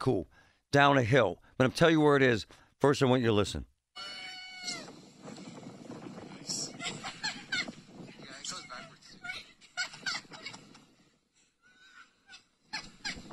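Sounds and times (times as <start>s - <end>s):
speech: 0.0s - 4.8s
children shrieking and chattering: 4.0s - 5.0s
children sledding down Galleon Avenue in Brookline, laughing and giggling: 6.5s - 11.0s, 11.7s - 13.3s.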